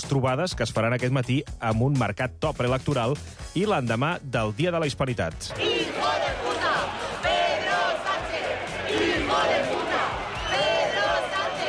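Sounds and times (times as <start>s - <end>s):
speech: 0.0s - 6.2s
large crowd chanting slogans: 5.5s - 11.6s.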